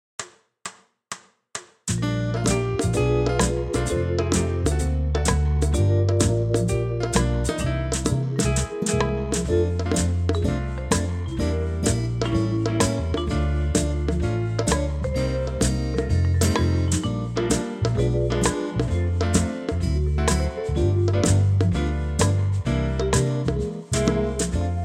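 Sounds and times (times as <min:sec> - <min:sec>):
backing track: 0:01.9 - 0:24.8.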